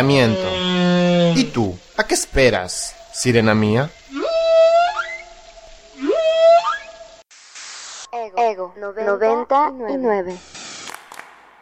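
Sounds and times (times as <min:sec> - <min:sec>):
speech: 0:00.0 - 0:00.6, 0:01.4 - 0:04.0, 0:08.2 - 0:10.5
whale song: 0:04.1 - 0:07.2.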